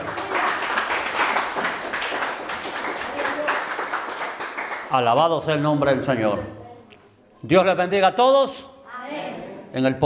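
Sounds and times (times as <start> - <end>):
audience applause: 0.0 - 5.0
speech: 4.9 - 6.6, 7.4 - 8.7, 9.7 - 10.0.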